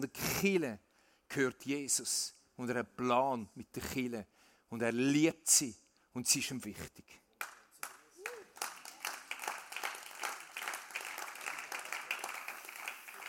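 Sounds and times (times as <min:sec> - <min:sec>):
speech: 0:00.0 - 0:07.2
audience clapping: 0:07.4 - 0:13.2.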